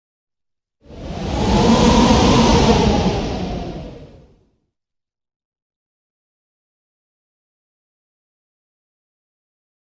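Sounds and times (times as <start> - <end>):
wind: 0.9 - 4.4.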